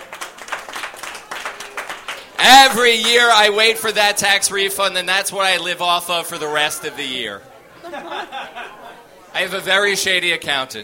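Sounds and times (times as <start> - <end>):
crowd applauding: 0.0 - 3.8
speech: 2.4 - 8.7, 9.4 - 10.8
laughter: 7.7 - 9.2.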